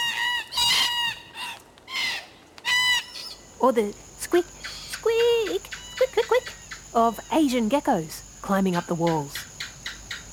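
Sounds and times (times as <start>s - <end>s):
red-tailed black cockatoos screeching from the trees: 0.0s - 3.4s
speech: 3.6s - 9.4s.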